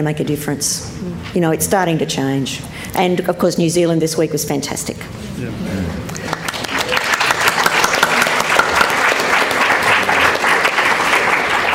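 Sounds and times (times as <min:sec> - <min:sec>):
speech: 0:00.0 - 0:06.0
audience applause: 0:06.1 - 0:11.7.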